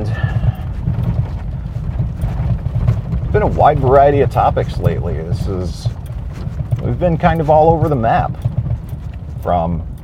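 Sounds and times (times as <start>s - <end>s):
horse hooves clip-clopping on a farm: 0.0s - 10.0s
low rumbling movement of horses on a farm: 0.0s - 10.0s
speech: 3.4s - 6.0s, 6.8s - 8.5s, 9.4s - 9.9s.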